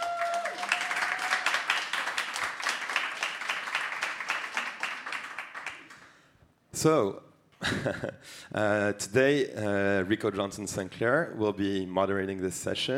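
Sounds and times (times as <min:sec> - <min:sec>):
audience applauding: 0:00.0 - 0:06.2
speech: 0:06.8 - 0:12.9.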